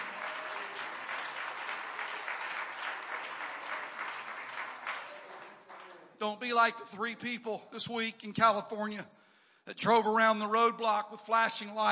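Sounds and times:
audience clapping hands in praise: 0:00.0 - 0:06.2
speech: 0:06.2 - 0:11.8.

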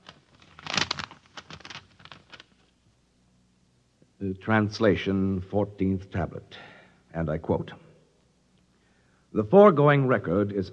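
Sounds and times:
envelope being torn open: 0:00.0 - 0:02.6
speech: 0:04.2 - 0:07.8, 0:09.3 - 0:10.7.

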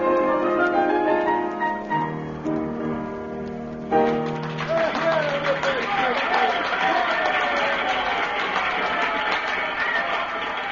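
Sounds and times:
sustained musical chords: 0:00.0 - 0:06.1
cafe audience applauding and cheering: 0:03.4 - 0:10.7.

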